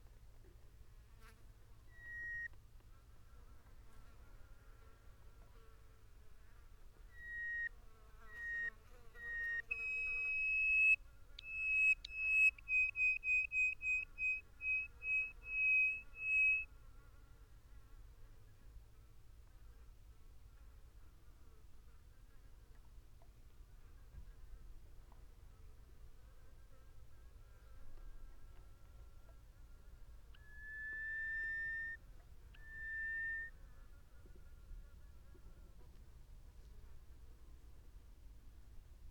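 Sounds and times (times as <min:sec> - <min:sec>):
bird whistling: 0:01.9 - 0:02.6, 0:07.1 - 0:07.7, 0:08.3 - 0:16.7, 0:30.4 - 0:32.0, 0:32.6 - 0:33.5.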